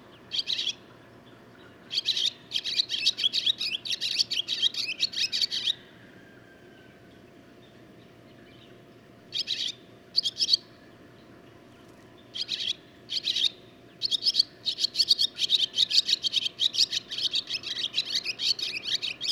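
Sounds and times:
barn swallow calling: 0.0s - 0.9s, 1.8s - 7.0s, 9.3s - 11.0s, 12.3s - 19.3s.

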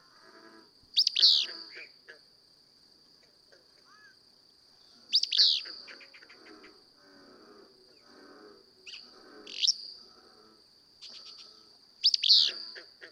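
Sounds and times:
Willow Flycatcher calling: 1.0s - 1.9s, 5.1s - 6.8s, 8.8s - 10.0s, 11.0s - 12.9s.

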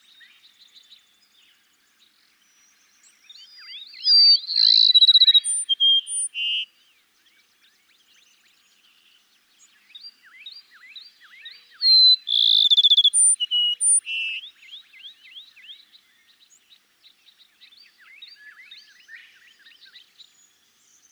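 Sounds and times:
Cassin's sparrow singing: 3.4s - 6.7s, 11.4s - 15.1s
other birds' rising chirps: 4.0s - 6.6s, 11.8s - 14.5s.

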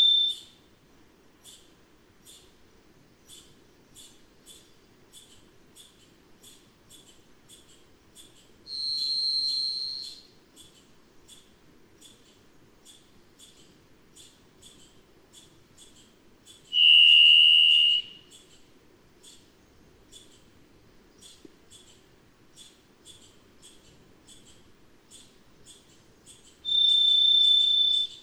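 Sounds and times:
varied thrush buzzy whistle: 8.7s - 10.2s, 16.8s - 18.2s, 26.7s - 28.2s.

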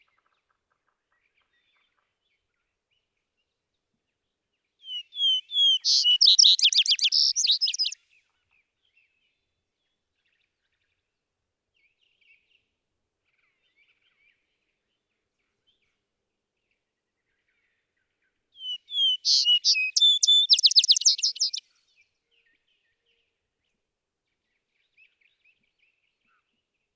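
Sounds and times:
vesper sparrow song: 4.8s - 8.0s, 18.6s - 21.7s.

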